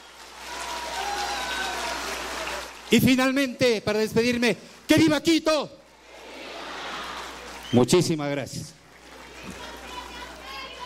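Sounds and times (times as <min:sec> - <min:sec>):
loud applause from an assembly audience: 0:00.0 - 0:03.4, 0:05.9 - 0:10.8
speech: 0:02.9 - 0:05.8, 0:07.7 - 0:08.8.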